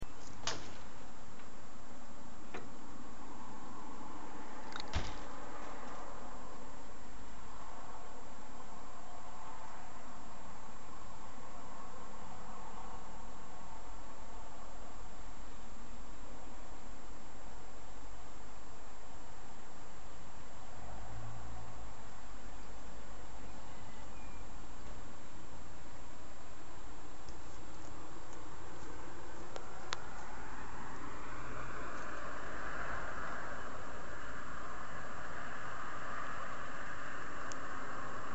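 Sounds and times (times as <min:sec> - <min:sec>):
ambient noise: 0:00.0 - 0:38.3.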